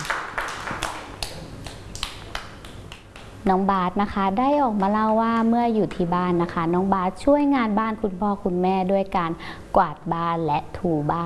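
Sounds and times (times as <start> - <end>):
children clapping: 0.0 - 3.3
speech: 3.4 - 11.2.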